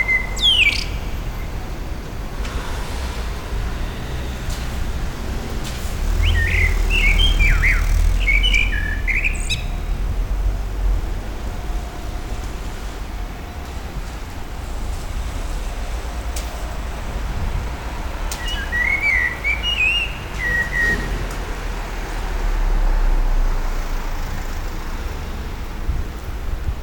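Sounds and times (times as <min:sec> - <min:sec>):
common blackbird singing: 0:00.0 - 0:01.6, 0:06.1 - 0:10.0, 0:18.3 - 0:21.3
low traffic rumble: 0:00.0 - 0:26.8.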